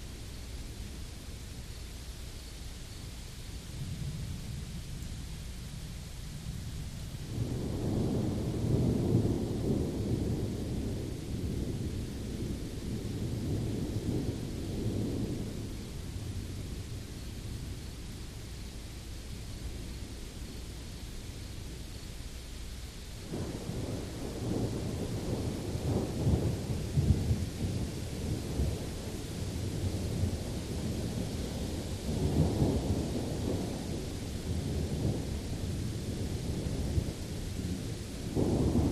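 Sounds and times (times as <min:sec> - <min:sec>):
rain at the end of an African drought: 0:00.0 - 0:38.9
distant thunder at the end of an African drought: 0:07.3 - 0:17.8, 0:23.3 - 0:38.9
crickets chirping: 0:07.3 - 0:38.9.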